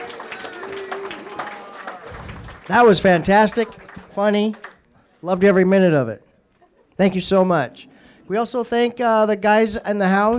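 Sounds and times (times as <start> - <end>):
audience applause: 0.0 - 4.8
speech: 2.7 - 4.6, 5.2 - 6.2, 7.0 - 10.3.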